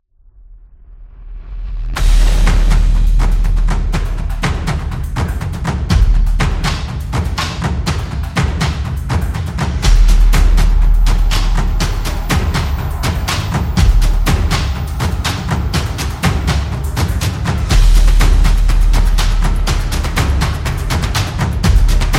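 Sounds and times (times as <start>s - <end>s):
hybrid cinematic drums: 1.4s - 22.1s.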